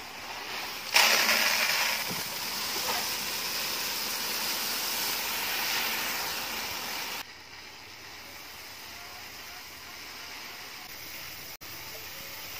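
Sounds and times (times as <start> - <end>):
dirty unhusked rice with stalks and strands poured into a bin: 0.0 - 7.3.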